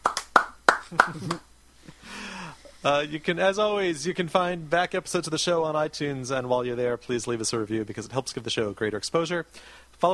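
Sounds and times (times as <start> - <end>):
one hand clapping: 0.0 - 1.5
speech: 0.9 - 2.2, 2.8 - 10.1.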